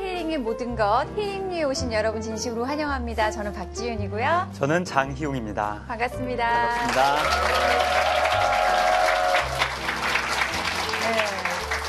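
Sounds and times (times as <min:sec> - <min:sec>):
speech: 0:00.4 - 0:08.0
audience applause: 0:06.7 - 0:11.8.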